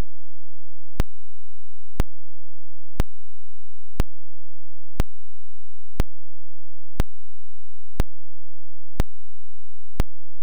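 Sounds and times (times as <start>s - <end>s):
half-hertz pulse: 0.0s - 10.4s.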